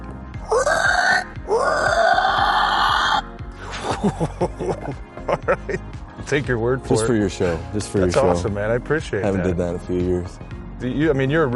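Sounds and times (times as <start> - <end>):
man imitating a dying pig squeal: 0.5 - 3.2
laughter: 3.6 - 5.9
speech: 4.0 - 11.5.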